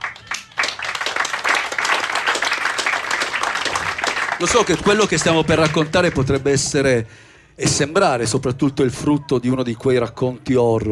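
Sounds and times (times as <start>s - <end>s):
audience applause: 0.0s - 6.6s
speech: 4.4s - 10.8s.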